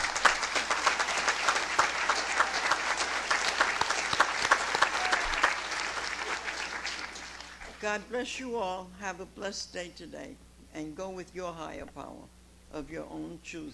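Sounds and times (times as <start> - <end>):
room full of people applauding: 0.0 - 7.9
speech: 7.8 - 13.7.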